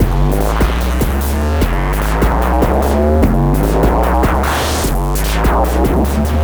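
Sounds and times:
strange drums: 0:00.0 - 0:06.4.

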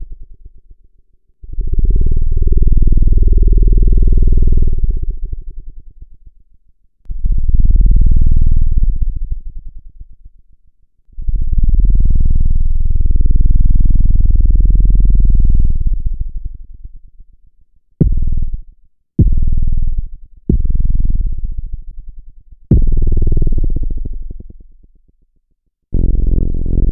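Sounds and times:
808 sub bass: 0:01.4 - 0:06.1, 0:07.1 - 0:10.1, 0:11.2 - 0:17.0, 0:18.0 - 0:24.9, 0:26.0 - 0:26.8.

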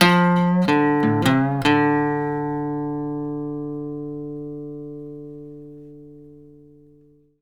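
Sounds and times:
blues guitar licks: 0:00.0 - 0:07.2.

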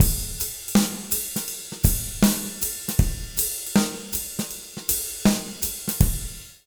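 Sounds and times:
jazz latin rock drum loop: 0:00.0 - 0:06.4.

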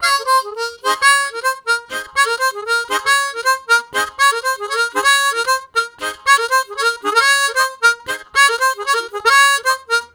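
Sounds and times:
harmonica riffs: 0:00.0 - 0:10.1.

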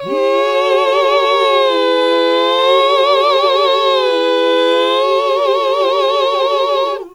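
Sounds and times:
gospel music: 0:00.0 - 0:07.1.

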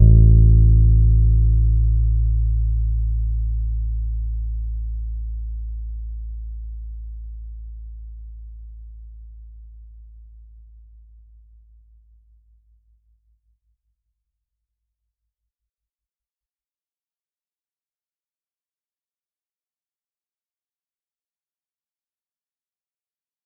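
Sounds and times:
soft E-flat note on Pedulla Thunderbass bass guitar: 0:00.0 - 0:05.5.

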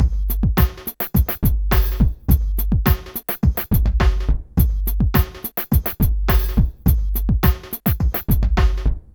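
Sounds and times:
hip hop beat: 0:00.0 - 0:09.1.

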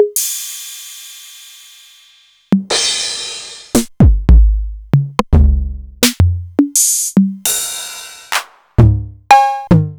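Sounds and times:
Novation Drumstation drum machine: 0:00.0 - 0:00.6, 0:02.6 - 0:09.9.

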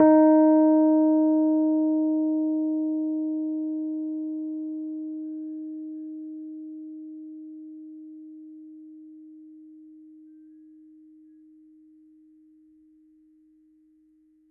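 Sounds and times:
Rhodes Mark II electric piano D sharp 4 note: 0:00.0 - 0:06.9.

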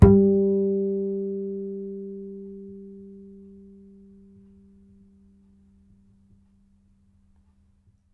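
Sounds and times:
upright acoustic bass: 0:00.0 - 0:05.0.

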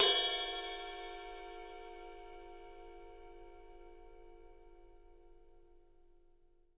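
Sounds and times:
ride cymbal: 0:00.0 - 0:03.2.

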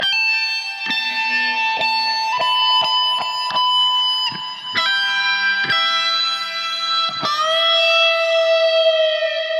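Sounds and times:
soaring guitar phrase in E: 0:00.0 - 0:09.5.

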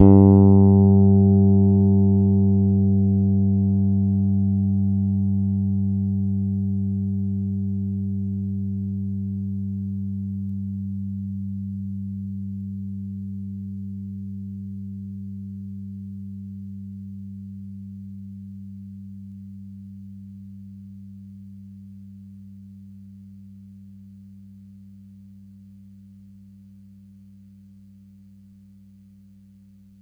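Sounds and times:
Pedulla Thunderbass bass guitar note G sharp played hard: 0:00.0 - 0:16.0.

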